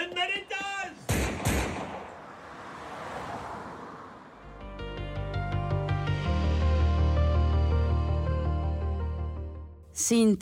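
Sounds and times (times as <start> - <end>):
gunshot sound effects in a radio drama: 1.1 - 2.2
music: 4.6 - 9.9
speech: 10.1 - 10.4.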